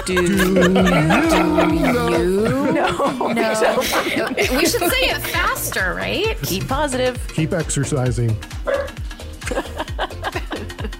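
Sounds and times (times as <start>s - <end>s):
laughter: 0.0s - 5.7s, 9.4s - 10.9s
speech: 0.0s - 8.8s
dog barking: 8.7s - 9.0s.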